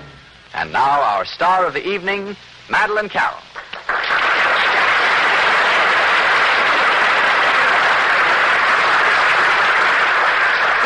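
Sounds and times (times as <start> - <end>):
speech: 0.6 - 3.5
crowd applauding: 3.6 - 10.8.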